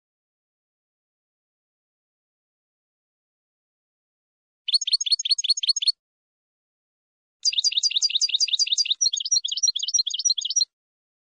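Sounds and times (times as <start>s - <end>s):
finch double chirps: 4.7s - 6.0s, 7.4s - 10.7s.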